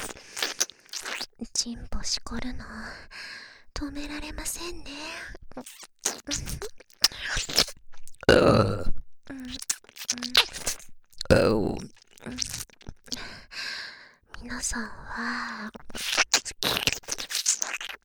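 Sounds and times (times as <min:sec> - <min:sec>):
soft mouth sounds: 0:00.0 - 0:01.5, 0:04.1 - 0:13.5, 0:14.4 - 0:18.0
speech: 0:01.4 - 0:07.7, 0:11.3 - 0:11.9, 0:14.6 - 0:15.8
burping beside the ear: 0:08.3 - 0:09.0
breathy sighs: 0:13.1 - 0:14.2.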